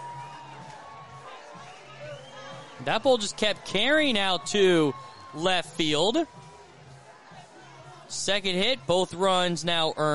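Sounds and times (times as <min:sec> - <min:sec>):
baseball crowd cheering a two-run home run at a San Jose game: 0:00.0 - 0:08.1
speech: 0:02.8 - 0:06.4, 0:08.1 - 0:10.1.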